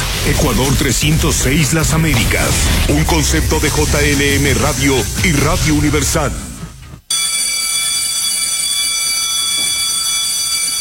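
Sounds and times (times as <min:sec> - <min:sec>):
speech: 0:00.3 - 0:06.5
bell or buzzer ringing: 0:07.1 - 0:10.7.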